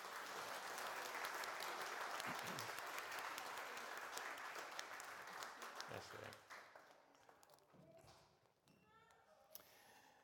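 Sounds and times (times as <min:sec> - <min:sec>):
crowd applauding: 0:00.0 - 0:07.0
speech: 0:02.3 - 0:02.8, 0:05.9 - 0:06.5.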